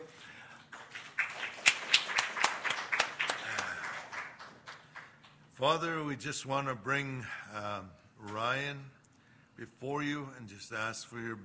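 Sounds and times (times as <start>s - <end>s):
audience clapping in welcome: 0.0s - 5.5s
speech: 5.6s - 9.0s, 9.6s - 11.4s.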